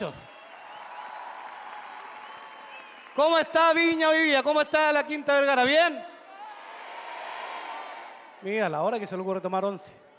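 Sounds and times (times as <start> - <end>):
speech: 0.0 - 0.3, 3.2 - 6.1, 8.4 - 10.0
audience applause for the ballet: 0.0 - 3.6.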